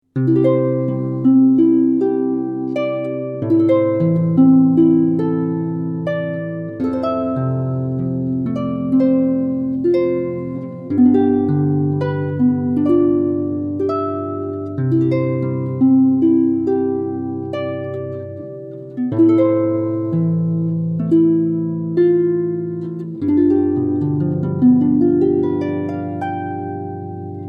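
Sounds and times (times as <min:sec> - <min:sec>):
harp: 0:00.0 - 0:27.4.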